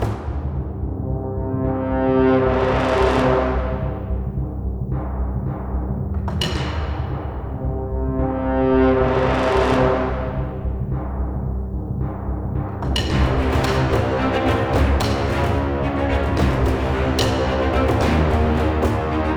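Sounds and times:
old desperate battle music loop: 0:00.0 - 0:19.3.

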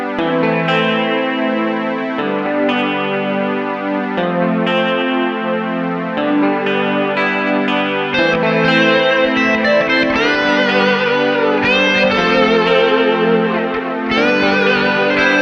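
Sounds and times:
main menu music guitar version: 0:00.1 - 0:15.3.

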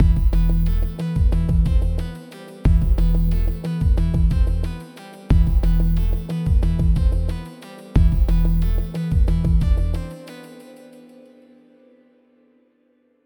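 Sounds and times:
bass: 0:00.0 - 0:10.2.

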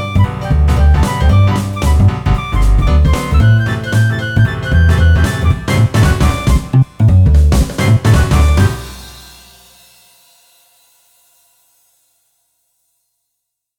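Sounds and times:
jazz music: 0:00.0 - 0:09.4.

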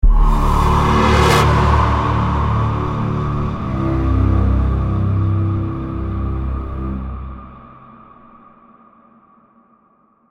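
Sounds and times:
soundtrack stinger: 0:00.0 - 0:08.1.

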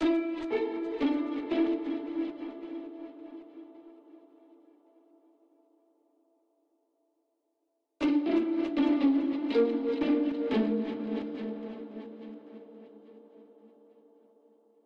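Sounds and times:
pizzicato strings: 0:00.0 - 0:03.6, 0:08.0 - 0:12.6.

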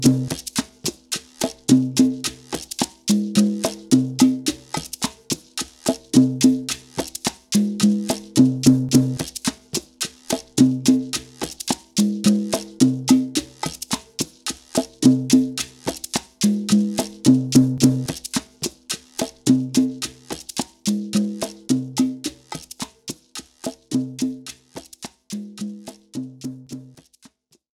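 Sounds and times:
salsa music loop: 0:00.0 - 0:27.2.

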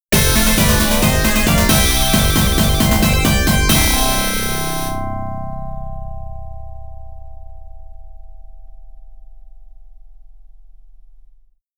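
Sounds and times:
game over sound: 0:00.2 - 0:05.0.

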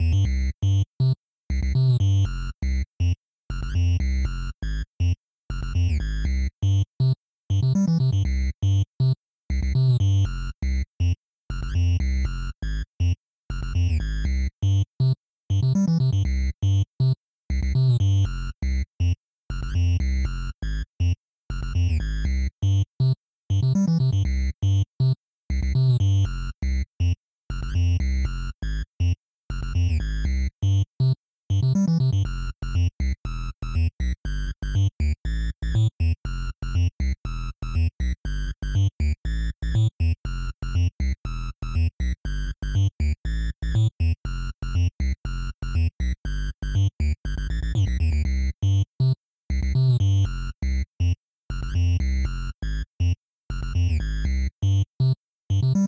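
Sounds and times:
bass: 0:00.0 - 0:55.8.

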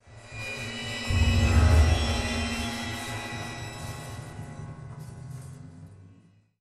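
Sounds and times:
string sting: 0:00.6 - 0:04.7.

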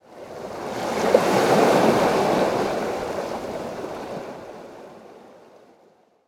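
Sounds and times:
waves: 0:00.0 - 0:06.2.

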